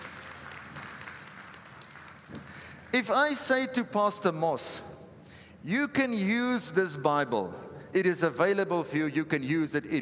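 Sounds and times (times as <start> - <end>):
church congregation applauding a visiting pastor and his wife: 0.0 - 3.0
speech: 2.9 - 4.9, 5.6 - 10.0.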